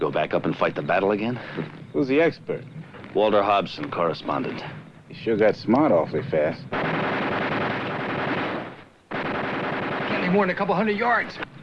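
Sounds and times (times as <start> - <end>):
speech: 0.0 - 7.1, 10.3 - 11.5
heavy gunfire spraying the woods: 6.7 - 11.0.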